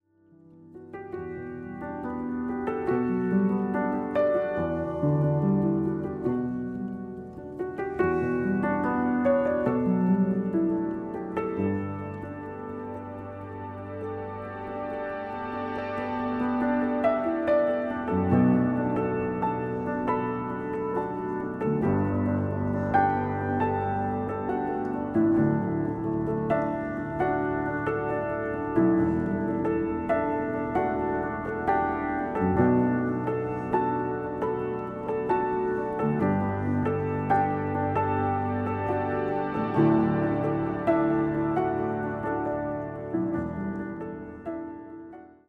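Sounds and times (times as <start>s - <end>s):
short piano pieces: 0.0s - 45.4s.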